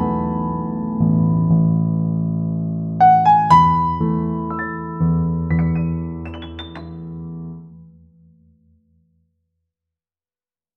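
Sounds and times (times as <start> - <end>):
solo piano: 0.0 - 8.2.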